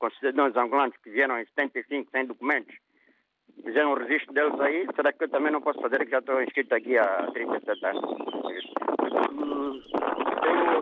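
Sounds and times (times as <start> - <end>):
speech: 0.1 - 10.8
wind noise on caller's phone line: 3.5 - 10.8.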